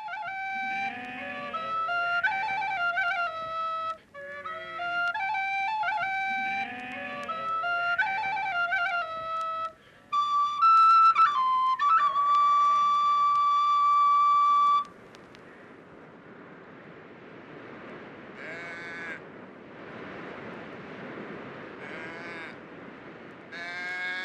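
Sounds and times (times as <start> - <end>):
shepherd playing a reed flute melody: 0.0 - 15.0.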